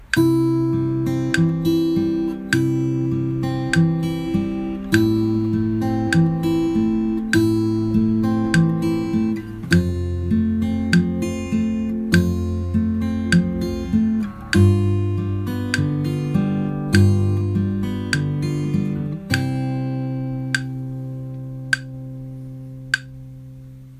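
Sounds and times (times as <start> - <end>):
arpeggio: 0.2 - 22.0.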